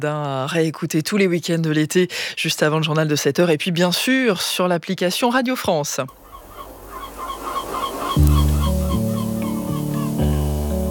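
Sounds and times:
speech: 0.0s - 6.3s
seagulls calling by the sea: 6.1s - 10.9s
sustained musical chord: 8.2s - 10.9s.

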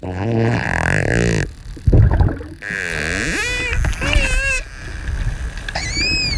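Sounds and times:
dolphin vocalizations: 0.0s - 5.1s.

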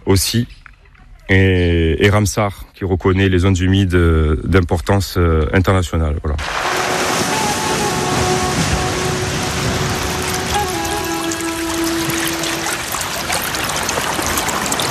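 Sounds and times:
speech: 0.1s - 0.6s, 1.3s - 6.9s
rushing and trickling water at the Urbino pond wetland, eastern Corsica: 6.4s - 14.8s.

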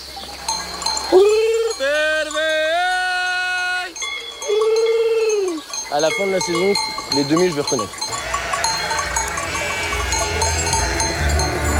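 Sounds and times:
faint bell-like clinks: 0.0s - 11.7s
speech: 5.9s - 8.0s
shepherd imitating lamb gurgle to call ewes: 8.1s - 11.7s.

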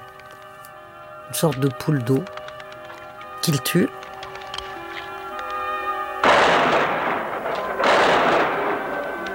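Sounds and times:
speech: 1.3s - 2.4s, 3.4s - 4.0s
gunshot in a hunting scene: 6.2s - 9.3s.

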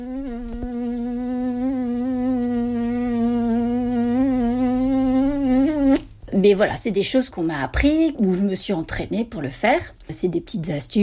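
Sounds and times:
mouth imitation of a buzzing fly with pressed lips: 0.0s - 6.1s
speech: 6.4s - 11.0s.

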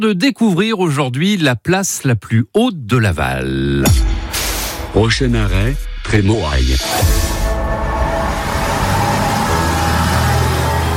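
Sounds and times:
speech: 0.0s - 4.2s, 4.9s - 7.8s
city bus engine drone: 7.5s - 10.9s
road rumble inside a moving bus: 7.8s - 10.9s.

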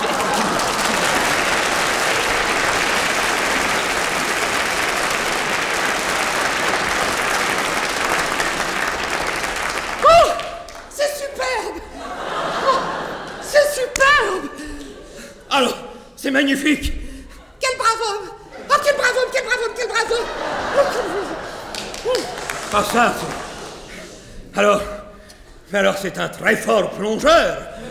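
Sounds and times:
crowd applause: 0.0s - 11.0s, 11.9s - 14.0s, 20.0s - 24.3s
laughter: 0.0s - 15.7s, 17.4s - 24.5s
speech: 16.4s - 17.0s, 22.8s - 23.4s, 24.6s - 24.9s, 25.7s - 27.8s.

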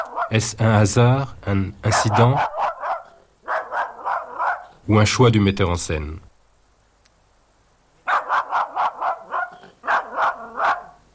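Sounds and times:
dog barking: 0.0s - 0.4s, 1.9s - 4.8s, 8.0s - 11.1s
speech: 0.3s - 2.6s, 4.9s - 6.3s.

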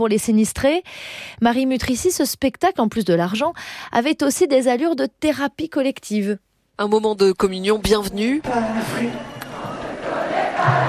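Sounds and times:
speech: 0.0s - 9.4s
concert crowd singing together at a charity show: 8.5s - 10.8s.

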